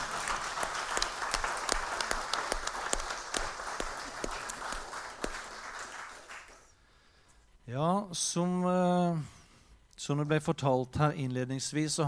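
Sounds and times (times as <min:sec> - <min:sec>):
audience applause: 0:00.0 - 0:06.7
speech: 0:07.7 - 0:09.4, 0:10.0 - 0:12.0.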